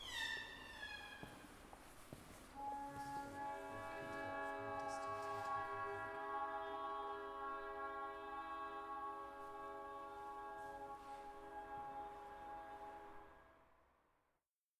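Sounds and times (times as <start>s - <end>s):
restroom sounds: 0.0s - 13.2s.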